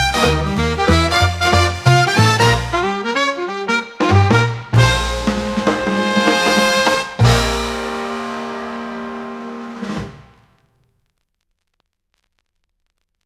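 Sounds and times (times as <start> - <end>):
big band swing at 92 BPM: 0.0 - 10.5.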